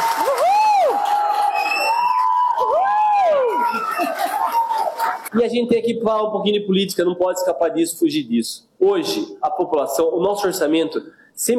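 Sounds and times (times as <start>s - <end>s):
audience applause: 0.0s - 5.3s
speech: 5.3s - 11.5s.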